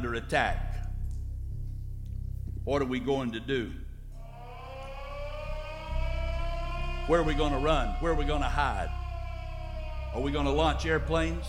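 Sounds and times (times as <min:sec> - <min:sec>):
speech: 0:00.0 - 0:00.7, 0:02.6 - 0:03.8, 0:07.1 - 0:09.0, 0:10.1 - 0:11.4
low rumble: 0:00.0 - 0:11.4
air raid siren wailing: 0:02.7 - 0:11.4.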